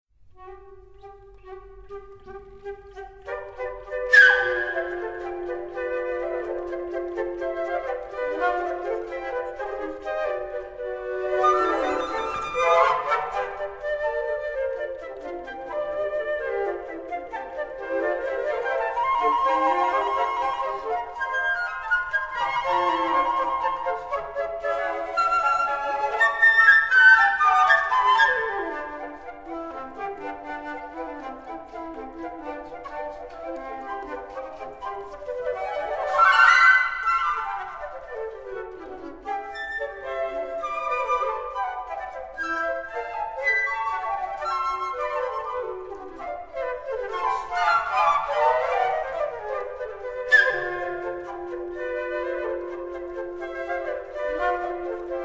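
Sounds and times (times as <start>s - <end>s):
quartet for four flutes: 0.3s - 55.2s.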